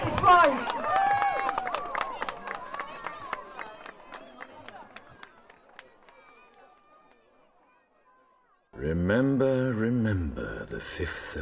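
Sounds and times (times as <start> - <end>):
crowd clapping: 0.0 - 7.3
crowd cheering: 0.0 - 8.7
crowd chatter: 0.0 - 11.4
speech: 10.8 - 11.4.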